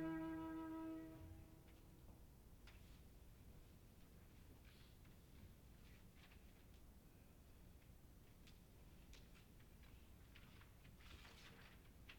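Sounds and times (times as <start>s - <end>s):
flute sonata in E major: 0.0s - 1.4s.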